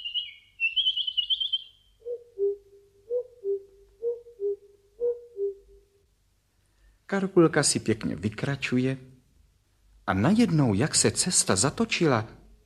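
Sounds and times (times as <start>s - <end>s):
bird warbling in a quiet forest: 0.0s - 5.8s
speech: 7.1s - 9.1s, 10.1s - 12.4s.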